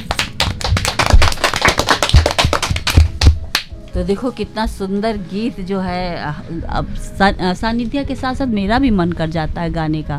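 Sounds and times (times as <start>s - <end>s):
crowd clapping: 0.0s - 3.7s
speech: 4.0s - 10.1s.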